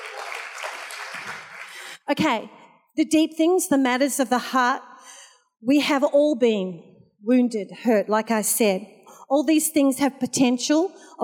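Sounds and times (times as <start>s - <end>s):
audience clapping: 0.0s - 2.0s
speech: 2.1s - 11.2s.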